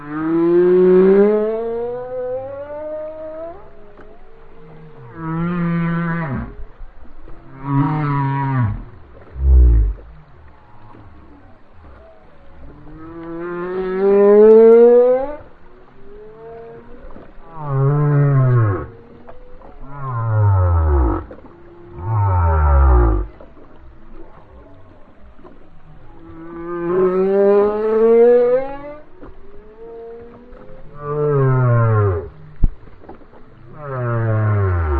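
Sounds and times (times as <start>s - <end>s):
whale song: 0.0s - 34.9s.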